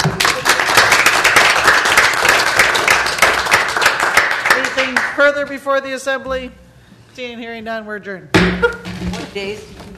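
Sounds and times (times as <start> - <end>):
crowd applauding: 0.0 - 5.2
speech: 5.3 - 6.6, 7.2 - 9.8.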